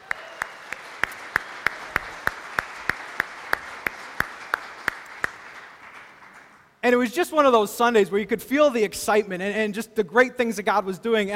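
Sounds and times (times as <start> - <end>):
church congregation clapping in steady unison: 0.0 - 6.8
soft hiss: 0.1 - 11.3
speech: 6.9 - 11.3.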